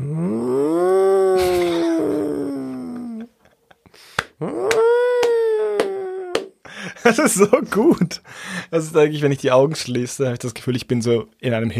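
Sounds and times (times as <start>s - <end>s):
person imitating cat noises: 0.0s - 3.3s, 4.4s - 6.5s
speech: 7.1s - 11.7s.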